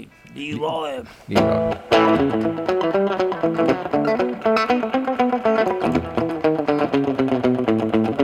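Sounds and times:
speech: 0:00.0 - 0:05.0
electric guitar played with doubling echo effect: 0:01.4 - 0:08.2.

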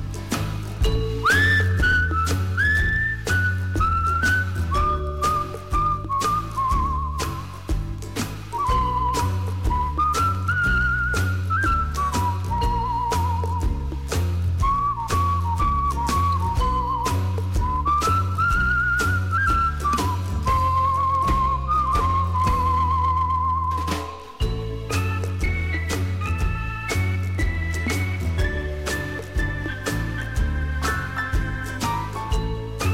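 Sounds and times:
bright whistled melody with gentle vibrato: 0:00.0 - 0:32.9
music track with thumping bass line and regular percussion: 0:00.0 - 0:32.9.

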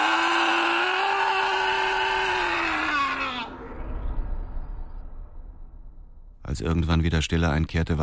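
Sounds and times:
person screaming: 0:00.0 - 0:03.6
speech: 0:06.5 - 0:08.0.

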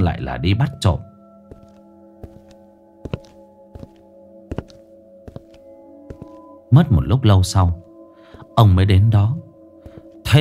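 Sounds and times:
speech: 0:00.0 - 0:01.1, 0:06.7 - 0:07.8, 0:08.6 - 0:09.4
soft footsteps sneaking toward the pond: 0:01.4 - 0:06.6.

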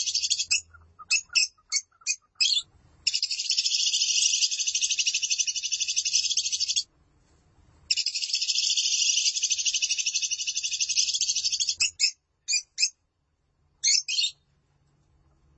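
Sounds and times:
Lovebird song: 0:00.0 - 0:06.9, 0:07.9 - 0:12.9
faint low hum: 0:00.0 - 0:15.5.

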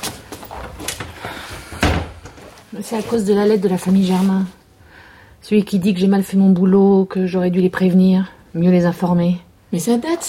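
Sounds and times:
shuffling: 0:00.0 - 0:04.6
door closing thump: 0:01.8 - 0:02.3
speech: 0:02.7 - 0:04.6, 0:05.4 - 0:10.2.

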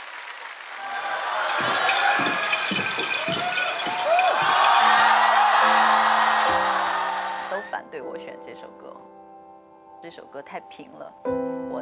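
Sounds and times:
audience applause and cheering: 0:00.0 - 0:07.7
speech: 0:10.1 - 0:11.8.

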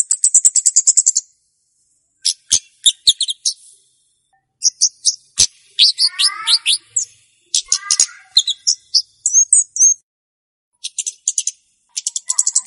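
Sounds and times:
flowerpecker ticking call series: 0:00.0 - 0:01.3, 0:02.2 - 0:03.6, 0:04.6 - 0:10.0, 0:10.8 - 0:12.6.

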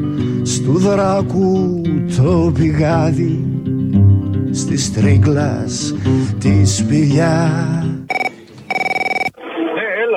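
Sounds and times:
speech: 0:00.4 - 0:08.2
telephone ringing with electronic trill: 0:08.1 - 0:09.4.

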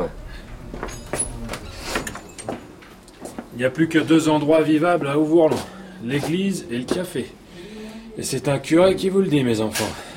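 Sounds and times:
door being shut in a café: 0:00.0 - 0:02.8
speech: 0:03.6 - 0:07.4, 0:08.2 - 0:10.1.

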